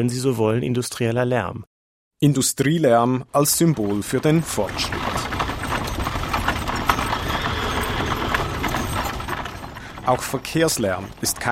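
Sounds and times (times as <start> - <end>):
speech: 0.0 - 5.2, 10.1 - 11.5
horse hooves clip-clopping on cobblestones: 3.5 - 11.5.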